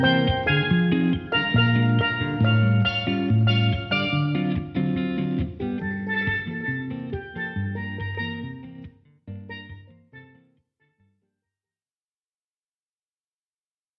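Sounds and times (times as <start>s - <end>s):
jazz duo playing steel strings: 0.0s - 9.9s.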